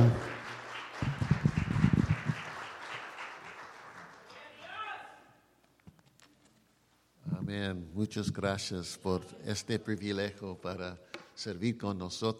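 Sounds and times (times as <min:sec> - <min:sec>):
church audience applause: 0:00.0 - 0:04.9
speech: 0:07.8 - 0:12.3.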